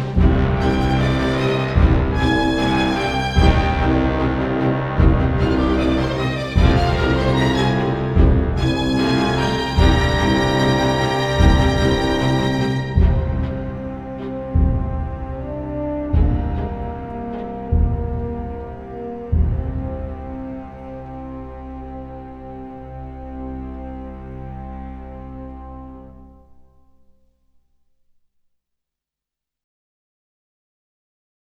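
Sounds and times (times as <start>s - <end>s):
war drums: 0.0s - 20.6s.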